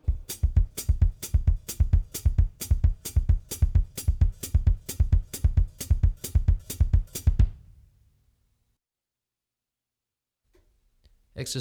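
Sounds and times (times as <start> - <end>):
hi-hat: 0.0 - 7.8
bass drum: 0.0 - 7.9.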